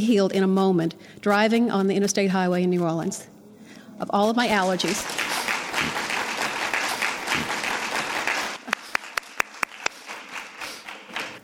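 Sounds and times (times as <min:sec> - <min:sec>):
speech: 0:00.0 - 0:03.3, 0:04.0 - 0:05.2
audience applause: 0:04.6 - 0:11.4.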